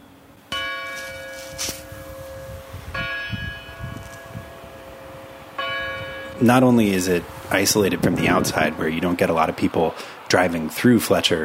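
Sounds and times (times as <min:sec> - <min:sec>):
church bells ringing: 0:00.5 - 0:07.2
speech: 0:01.6 - 0:01.8, 0:06.4 - 0:11.4.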